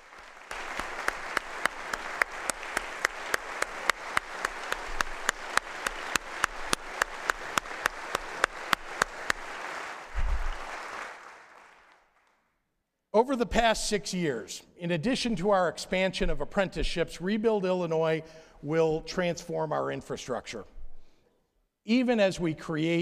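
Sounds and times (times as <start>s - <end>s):
audience applause: 0.0s - 12.4s
speech: 13.2s - 20.7s, 21.8s - 22.9s.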